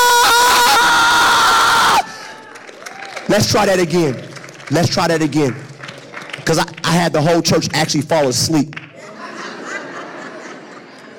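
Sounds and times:
audience roaring and cheering: 0.0 - 4.2
speech: 3.3 - 5.7, 6.4 - 8.8
laughter: 8.9 - 11.1.

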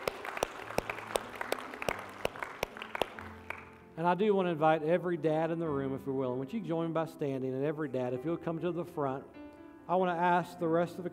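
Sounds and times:
audience hand clapping: 0.0 - 3.9
speech: 4.0 - 11.1.

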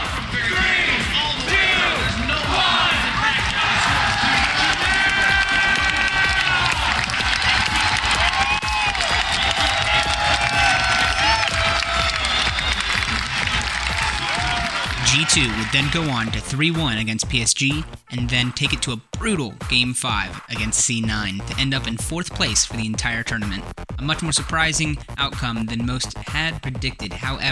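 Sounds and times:
huge arena crowd roaring and shouting: 0.0 - 16.2
huge arena crowd applause: 2.0 - 16.1
high whoops and screams from arena crowd: 3.7 - 12.9, 13.9 - 15.0
speech: 15.4 - 27.5.

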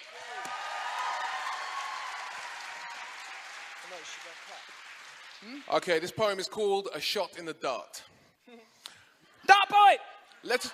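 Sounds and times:
crowd applauding: 0.0 - 6.4
speech: 3.9 - 8.8, 9.9 - 10.7.

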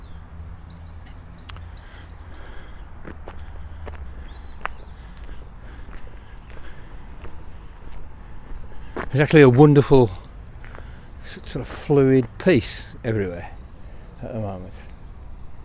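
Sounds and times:
birds singing in spring: 0.0 - 15.6
speech: 9.1 - 10.2, 11.5 - 13.6, 14.2 - 14.9.

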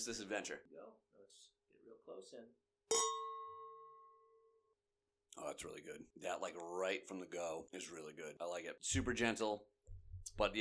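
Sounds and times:
speech: 0.0 - 3.1, 5.3 - 10.5
wine glasses clinking in a toast: 2.9 - 4.3.

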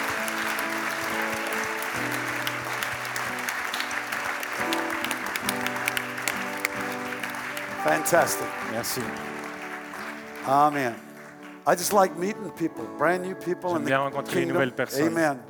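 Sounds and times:
audience applauding: 0.0 - 12.7
low musical tones: 7.7 - 9.5
speech: 7.8 - 9.4, 10.4 - 11.1, 11.7 - 15.4.

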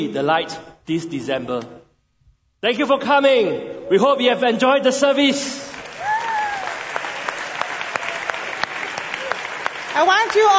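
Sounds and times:
speech: 0.0 - 1.8, 2.6 - 5.7, 10.0 - 10.5
audience clapping: 5.6 - 10.5
faint cheer or whistle: 6.0 - 6.9.

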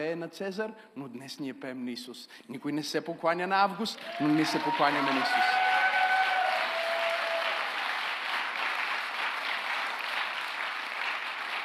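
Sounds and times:
speech: 0.0 - 5.8
audience applause: 4.0 - 11.6.

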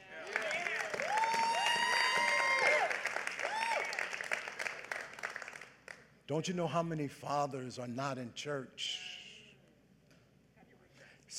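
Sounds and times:
audience cheering: 0.0 - 4.9
audience applause: 0.0 - 6.0
speech: 6.3 - 9.1.

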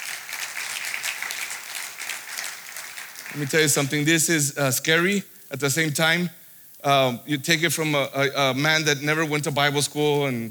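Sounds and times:
audience clapping: 0.0 - 4.1
speech: 3.3 - 10.5.

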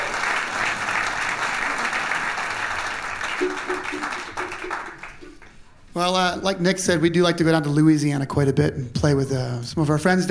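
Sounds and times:
audience applause at a live music show: 0.0 - 5.6
speech: 3.4 - 4.9, 6.0 - 10.2.

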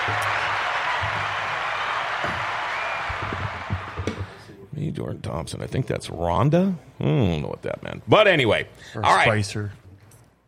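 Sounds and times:
studio applause from a small group: 0.0 - 4.3
speech: 4.9 - 9.8.

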